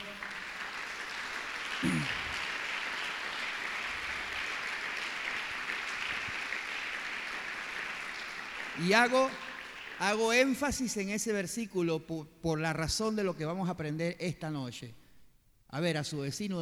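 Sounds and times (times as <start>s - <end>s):
audience applauding: 0.0s - 10.6s
speech: 8.8s - 9.4s, 10.0s - 15.0s, 15.7s - 16.6s.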